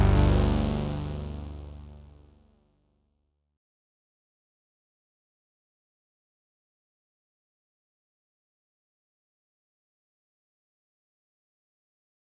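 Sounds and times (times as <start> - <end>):
synthesizer brass patch: 0.0 - 2.6.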